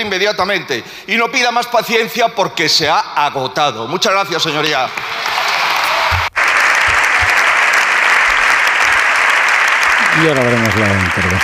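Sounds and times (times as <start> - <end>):
speech: 0.0 - 5.2, 10.2 - 11.4
long applause: 4.8 - 11.4.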